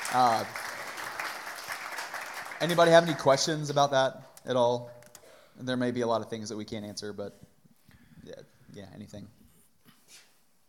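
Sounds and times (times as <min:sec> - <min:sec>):
audience clapping: 0:00.0 - 0:04.0
speech: 0:00.1 - 0:00.6, 0:02.6 - 0:05.0, 0:05.6 - 0:07.5, 0:08.2 - 0:09.4.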